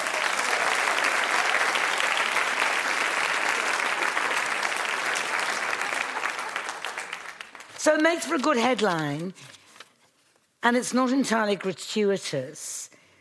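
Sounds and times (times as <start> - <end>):
audience applauding a speaker: 0.0 - 7.8
speech: 7.8 - 9.6, 10.6 - 12.9.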